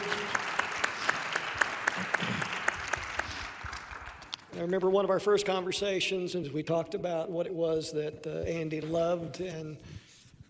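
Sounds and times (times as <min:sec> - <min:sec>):
audience applause: 0:00.0 - 0:04.5
speech: 0:04.6 - 0:10.4.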